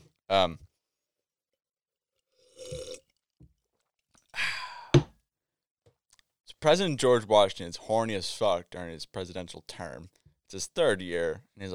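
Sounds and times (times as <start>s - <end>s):
speech: 0.3s - 0.7s, 6.6s - 11.7s
person sipping a drink: 2.2s - 3.2s.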